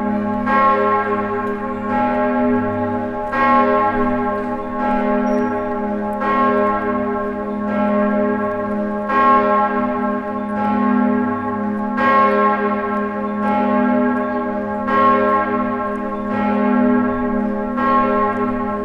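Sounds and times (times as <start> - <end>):
Bern cathedral bell: 0.0 - 18.8.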